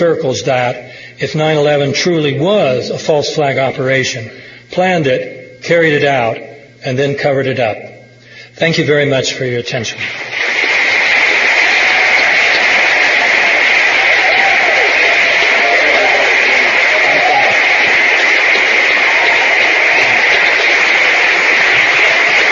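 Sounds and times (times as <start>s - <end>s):
speech: 0.0s - 8.0s, 8.6s - 10.7s
theater audience giving a standing ovation: 10.0s - 22.5s.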